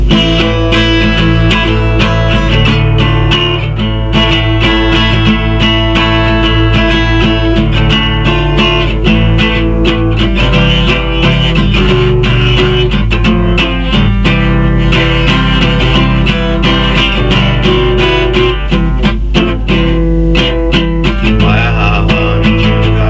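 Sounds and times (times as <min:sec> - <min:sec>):
acoustic salsa music: 0:00.1 - 0:23.0.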